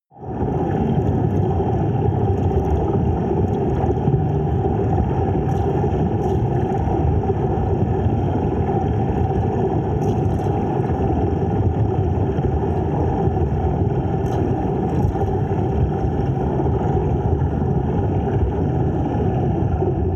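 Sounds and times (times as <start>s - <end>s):
dark water sound effect: 0.1s - 20.1s.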